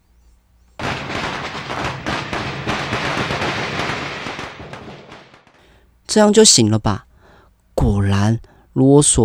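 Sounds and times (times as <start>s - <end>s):
firecrackers exploding: 0.7s - 6.0s
speech: 6.1s - 7.1s, 7.8s - 9.2s.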